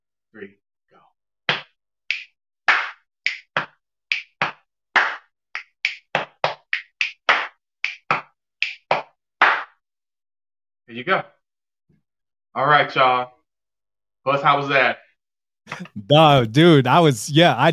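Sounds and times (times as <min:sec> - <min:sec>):
speech: 0:00.3 - 0:00.6, 0:10.9 - 0:11.4, 0:12.5 - 0:13.4, 0:14.2 - 0:15.0, 0:15.7 - 0:17.7
body percussion rhythm of snaps hits and claps: 0:01.5 - 0:09.8.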